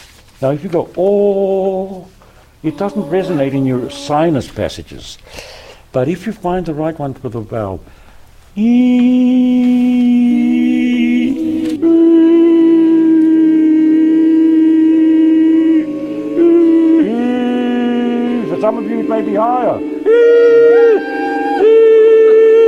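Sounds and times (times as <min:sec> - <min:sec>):
speech: 0:00.4 - 0:08.0, 0:08.6 - 0:09.3, 0:18.7 - 0:21.1
group learning to yodel in the library at Hazen Union High School: 0:02.6 - 0:04.6, 0:08.6 - 0:22.6.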